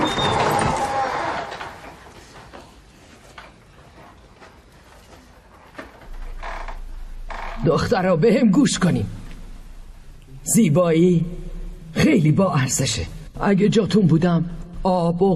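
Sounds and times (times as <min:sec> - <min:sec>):
door opening with scraping screech: 0:00.0 - 0:02.0, 0:06.0 - 0:08.4
rumbling shuffle: 0:02.0 - 0:13.5
speech: 0:07.7 - 0:09.2, 0:10.5 - 0:11.4, 0:12.0 - 0:15.3.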